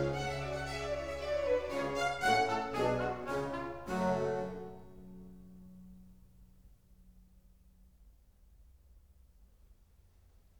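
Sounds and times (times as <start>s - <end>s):
oboe concerto in G minor allegro: 0.0s - 5.6s.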